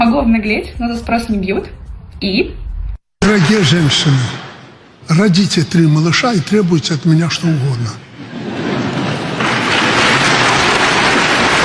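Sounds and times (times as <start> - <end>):
speech: 0.1 - 2.6, 3.3 - 4.4, 5.1 - 8.5
audience applause: 8.4 - 11.6.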